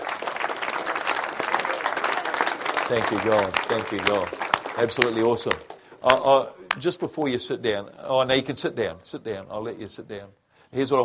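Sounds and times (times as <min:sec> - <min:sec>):
church congregation applause after a prayer of commitment: 0:00.0 - 0:06.9
speech: 0:02.9 - 0:11.0.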